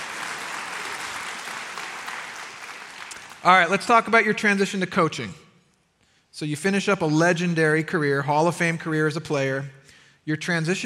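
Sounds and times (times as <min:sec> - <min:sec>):
audience applause: 0:00.0 - 0:03.6
speech: 0:03.4 - 0:05.4, 0:06.4 - 0:10.8.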